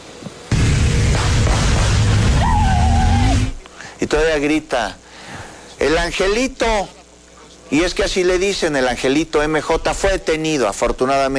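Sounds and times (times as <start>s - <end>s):
machine gun shots fired in the air: 0.5s - 3.6s
speech: 4.2s - 5.0s, 5.8s - 7.0s, 7.7s - 11.3s.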